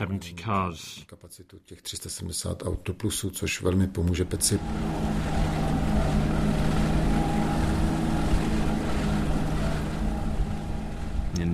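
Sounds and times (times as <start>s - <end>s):
speech: 0.0s - 7.4s
tracked vehicles driving past: 4.1s - 11.5s.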